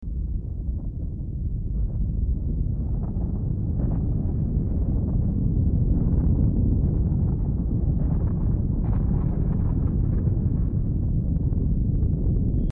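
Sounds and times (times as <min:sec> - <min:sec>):
earthquake dull rumbling: 0:00.0 - 0:12.7.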